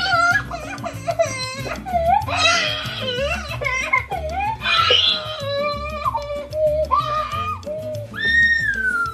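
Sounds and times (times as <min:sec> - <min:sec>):
young child screaming and crying in a tantrum: 0:00.0 - 0:09.1.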